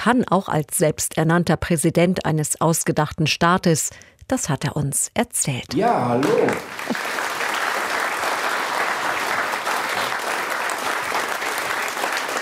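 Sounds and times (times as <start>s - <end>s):
speech: 0.0s - 7.2s
audience applause: 5.8s - 12.3s.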